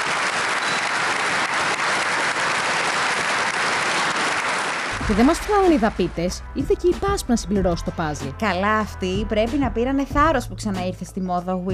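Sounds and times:
applause in parliament: 0:00.0 - 0:06.4
speech: 0:05.1 - 0:11.7.

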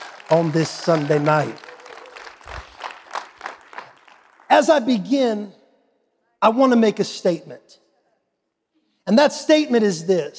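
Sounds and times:
audience clapping hands: 0:00.0 - 0:05.0
speech: 0:00.3 - 0:01.6, 0:04.6 - 0:05.6, 0:06.4 - 0:07.8, 0:09.1 - 0:10.3.

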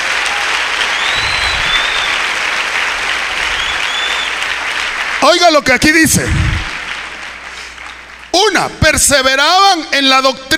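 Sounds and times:
audience applause: 0:00.0 - 0:08.7
speech: 0:05.2 - 0:06.6, 0:08.5 - 0:10.5.

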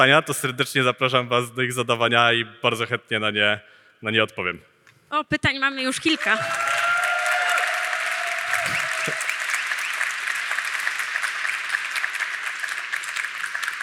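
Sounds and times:
speech: 0:00.0 - 0:06.8
audience applause: 0:06.1 - 0:13.8.

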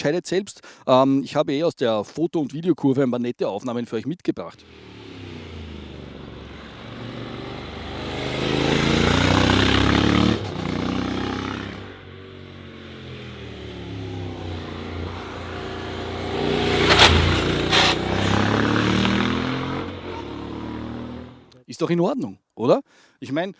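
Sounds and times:
speech: 0:00.0 - 0:05.0, 0:21.8 - 0:23.5
Honda NC750X motorcycle engine rumbling at low revs: 0:04.6 - 0:21.5.

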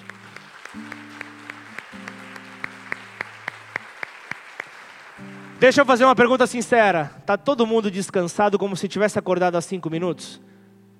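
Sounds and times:
audience clapping in a steady rhythmic beat: 0:00.0 - 0:06.8
speech: 0:05.6 - 0:10.5.

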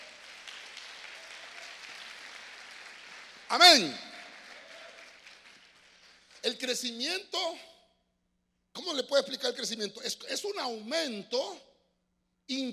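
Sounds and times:
hands clapping: 0:00.0 - 0:06.9
speech: 0:03.5 - 0:04.0, 0:06.4 - 0:07.7, 0:08.8 - 0:11.7, 0:12.5 - 0:12.7.

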